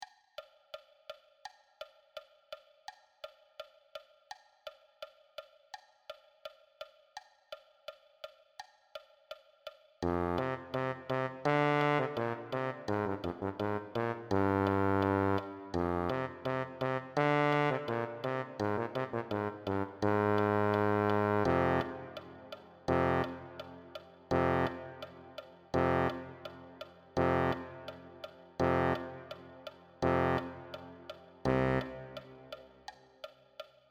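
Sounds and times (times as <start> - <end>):
tuba: 10.0 - 32.9.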